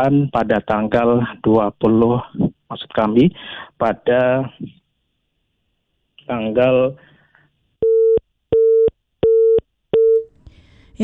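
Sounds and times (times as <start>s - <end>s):
speech: 0.0s - 4.8s, 6.3s - 7.1s
telephone busy signal after a dropped phone call: 7.8s - 10.3s.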